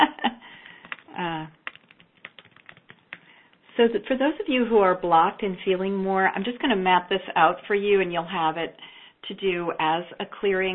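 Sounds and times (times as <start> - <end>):
typing on computer keyboard: 0.8 - 3.6
speech: 3.8 - 10.7.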